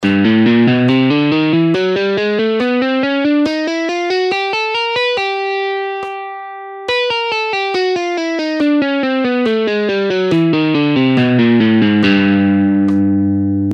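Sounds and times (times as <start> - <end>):
guitar warm-up exercise at half speed: 0.0 - 13.7.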